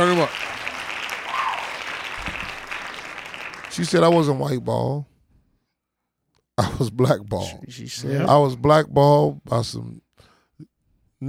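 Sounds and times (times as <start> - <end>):
applause, hand clapping: 0.0 - 4.2
speech: 3.8 - 5.1, 6.6 - 10.0.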